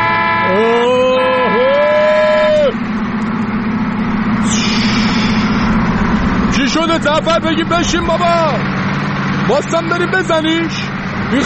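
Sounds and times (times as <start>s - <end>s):
wavering tonal whine: 0.0s - 9.1s
Nissan pickup truck engine droning: 0.0s - 11.4s
speech: 7.0s - 8.8s, 9.5s - 11.4s.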